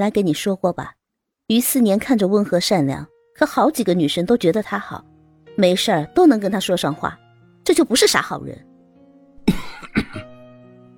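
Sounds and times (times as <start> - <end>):
speech: 0.0 - 8.7
person coughing at the door: 9.4 - 10.4.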